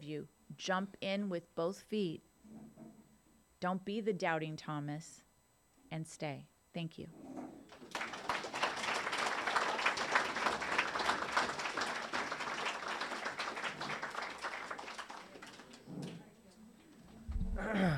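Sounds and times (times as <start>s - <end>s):
speech: 0.1s - 2.3s, 3.6s - 5.2s, 5.9s - 7.8s
audience applause: 7.7s - 16.1s.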